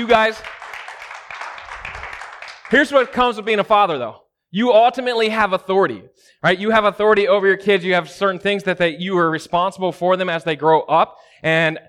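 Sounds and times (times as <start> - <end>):
speech: 0.0 - 0.6, 2.7 - 11.8
round of applause for fathers: 0.0 - 3.4.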